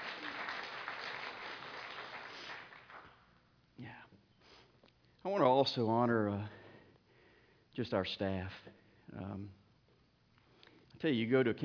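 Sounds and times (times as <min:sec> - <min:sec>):
audience applauding: 0:00.0 - 0:03.2
speech: 0:05.2 - 0:06.6, 0:07.8 - 0:09.6, 0:11.0 - 0:11.6.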